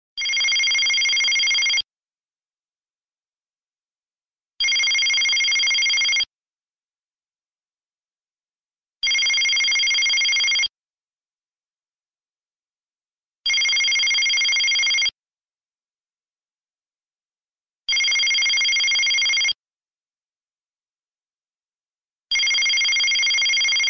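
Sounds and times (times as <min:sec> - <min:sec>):
Nextel ringtone: 0:00.2 - 0:01.9, 0:04.6 - 0:06.3, 0:09.0 - 0:10.7, 0:13.5 - 0:15.2, 0:17.9 - 0:19.6, 0:22.3 - 0:23.8.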